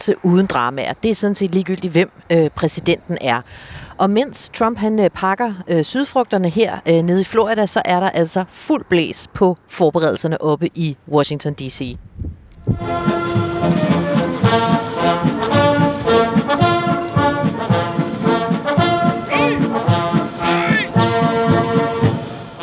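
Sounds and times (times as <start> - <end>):
speech: 0.0 - 13.8
military band with tubas rehearsing outdoors in front of the Capitol: 12.6 - 22.6.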